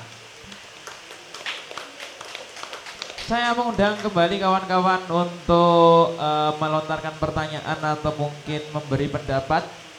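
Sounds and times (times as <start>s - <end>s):
audience applause: 0.5s - 3.3s
speech: 3.3s - 9.8s.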